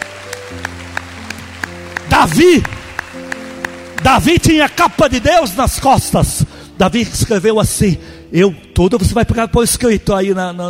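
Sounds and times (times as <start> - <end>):
audience applause: 0.0 - 5.9
speech: 2.2 - 2.8, 4.0 - 10.6.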